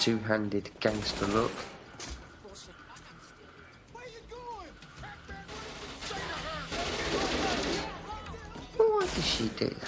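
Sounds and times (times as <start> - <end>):
speech: 0.0 - 2.2, 9.2 - 9.8
gunfire from a Steven Seagal action film: 5.5 - 8.0.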